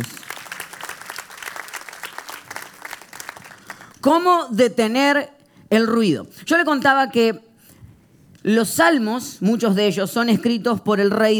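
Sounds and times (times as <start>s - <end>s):
speech: 0.0s - 0.2s, 4.0s - 7.5s, 8.4s - 11.3s
large crowd applauding loudly: 0.0s - 4.1s.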